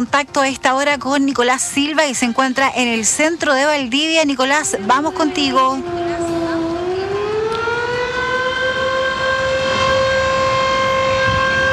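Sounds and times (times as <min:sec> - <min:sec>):
speech: 0:00.0 - 0:06.3
fire station sirens sounding for earthquake drill in Valdivia: 0:04.4 - 0:11.7.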